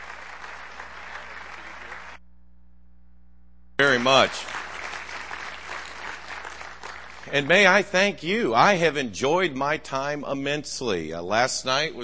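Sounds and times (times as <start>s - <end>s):
audience applause: 0.0s - 2.2s, 3.8s - 8.0s
speech: 4.0s - 4.6s, 7.3s - 12.0s.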